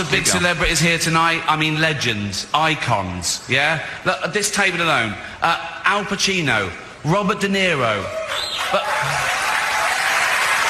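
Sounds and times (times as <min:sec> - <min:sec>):
speech: 0:00.0 - 0:09.2
audience cheering: 0:08.0 - 0:10.6.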